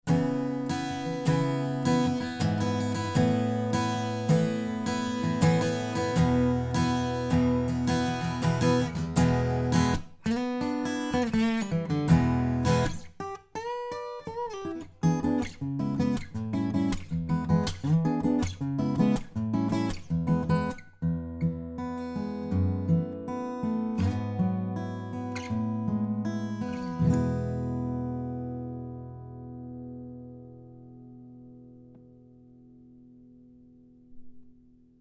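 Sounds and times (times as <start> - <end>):
acoustic guitar: 0.0 - 34.9.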